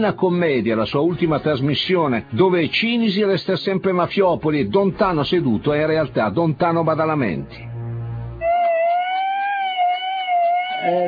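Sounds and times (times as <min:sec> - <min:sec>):
speech: 0:00.0 - 0:07.7, 0:10.8 - 0:11.0
brief low rumble: 0:05.0 - 0:08.5
ambulance siren wailing: 0:08.3 - 0:11.0.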